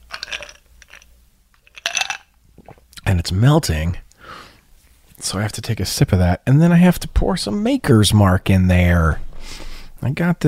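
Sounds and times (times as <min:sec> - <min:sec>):
ice clinking in a glass: 0:00.1 - 0:01.0, 0:01.7 - 0:02.3
speech: 0:03.3 - 0:04.0, 0:05.2 - 0:10.4.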